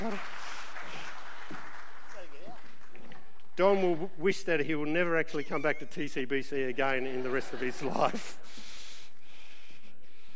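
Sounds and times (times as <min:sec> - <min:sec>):
audience applause for a man at a church gathering: 0:00.0 - 0:03.4
speech: 0:03.6 - 0:08.6
laughter: 0:05.1 - 0:08.6.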